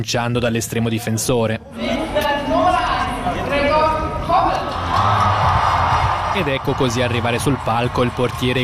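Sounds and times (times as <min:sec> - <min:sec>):
speech: 0:00.0 - 0:02.6, 0:06.4 - 0:08.6
crowd cheering and applauding players on stage: 0:02.6 - 0:08.6.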